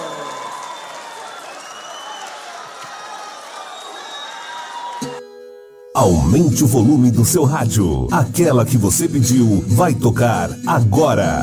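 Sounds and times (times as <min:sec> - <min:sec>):
audience applause and cheering: 0:00.0 - 0:05.2
speech: 0:06.0 - 0:11.4.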